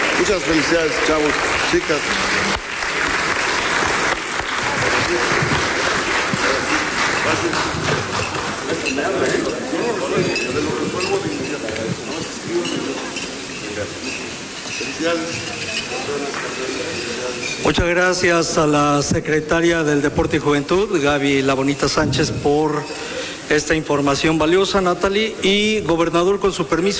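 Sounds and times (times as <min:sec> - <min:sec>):
audience applause: 0:00.0 - 0:11.0
speech: 0:00.2 - 0:03.2, 0:05.1 - 0:05.6, 0:06.6 - 0:13.1, 0:13.8 - 0:26.9.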